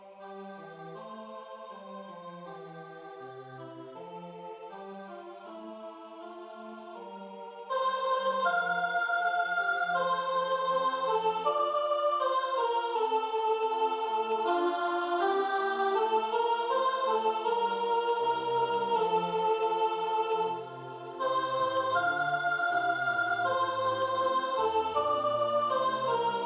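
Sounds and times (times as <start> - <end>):
soprano singing: 7.7 - 26.4.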